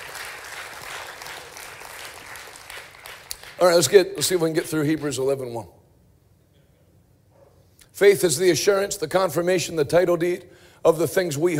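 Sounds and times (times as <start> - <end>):
crowd clapping: 0.0 - 5.2
speech: 3.6 - 5.8, 8.0 - 11.5.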